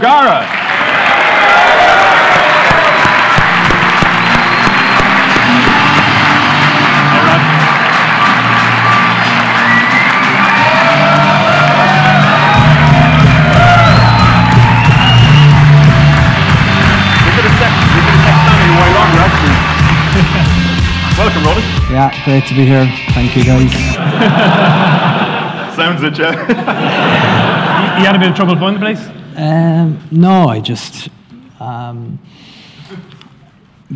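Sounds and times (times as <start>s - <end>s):
speech: 0.0s - 0.6s, 22.0s - 25.0s, 26.0s - 27.4s, 28.0s - 33.2s
audience applause and cheering: 0.0s - 25.7s
laughter: 16.4s - 20.9s, 23.9s - 28.6s.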